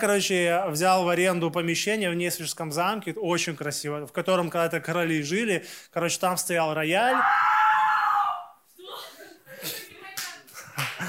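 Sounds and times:
speech: 0:00.0 - 0:07.5
loud sustained high whoop or shout: 0:07.1 - 0:08.6
short burst of scattered uneven applause: 0:10.2 - 0:11.0.

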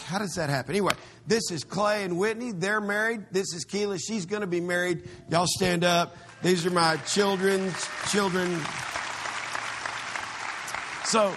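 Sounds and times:
speech: 0:00.1 - 0:09.0, 0:11.1 - 0:11.3
audience applause: 0:06.3 - 0:11.3.

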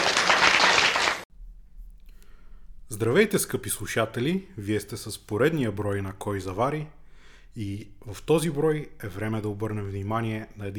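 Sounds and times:
crowd applauding: 0:00.0 - 0:01.3
speech: 0:02.9 - 0:10.7.

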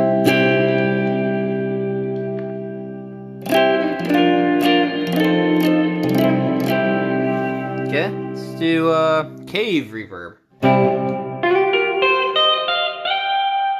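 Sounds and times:
electric guitar strumming through an amp on a clean setting with gain off: 0:00.0 - 0:13.7
speech: 0:08.6 - 0:10.8.

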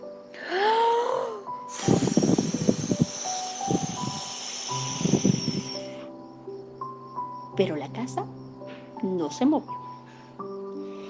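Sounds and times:
soft music with held tones: 0:00.0 - 0:11.0
wolf blowing at the pigs' house: 0:01.7 - 0:06.0
speech: 0:07.6 - 0:08.4, 0:09.3 - 0:09.8.

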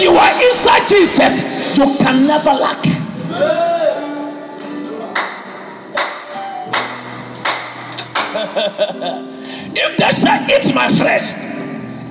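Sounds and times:
speech: 0:00.0 - 0:03.8, 0:08.5 - 0:11.6
sharp audience claps: 0:05.2 - 0:08.4
laughter: 0:08.2 - 0:09.4.

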